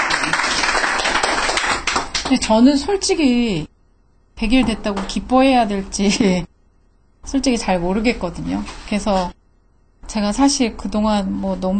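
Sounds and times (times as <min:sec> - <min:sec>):
applause from a gathering of families: 0:00.0 - 0:02.5
speech: 0:02.3 - 0:03.7, 0:04.4 - 0:06.5, 0:07.2 - 0:09.4, 0:10.1 - 0:11.7.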